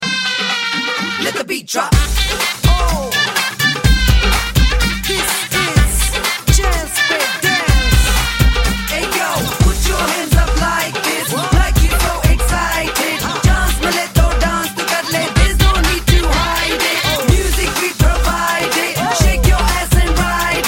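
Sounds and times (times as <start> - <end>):
dance rock music: 0.0 - 20.6
laughter: 9.0 - 20.6.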